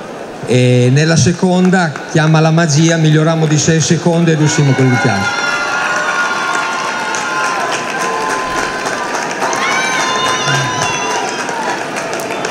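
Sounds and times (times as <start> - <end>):
speech: 0.5 - 5.4
crowd cheering: 1.1 - 12.4
crowd applause: 3.4 - 12.4.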